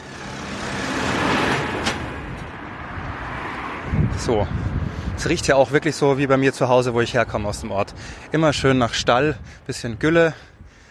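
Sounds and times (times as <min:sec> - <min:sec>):
tractor driving past: 0:00.0 - 0:02.3
speech: 0:04.2 - 0:10.5.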